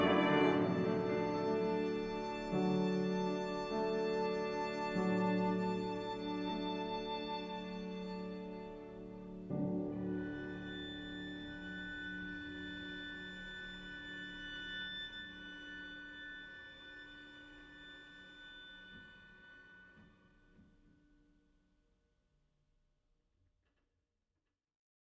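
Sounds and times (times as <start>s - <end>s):
piano trio: 0.0s - 13.0s.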